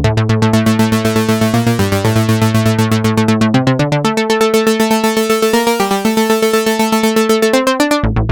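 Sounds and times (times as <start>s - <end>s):
synth: 0.2s - 8.2s.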